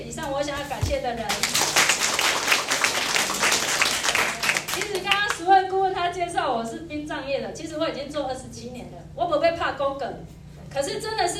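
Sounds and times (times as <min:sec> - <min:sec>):
speech: 0:00.2 - 0:01.6, 0:06.1 - 0:11.3
audience applause: 0:01.3 - 0:05.2.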